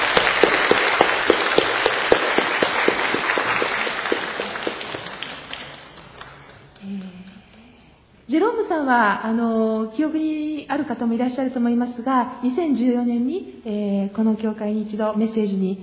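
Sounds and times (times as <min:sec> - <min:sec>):
audience applauding in welcome: 0:00.0 - 0:06.8
speech: 0:08.8 - 0:15.8.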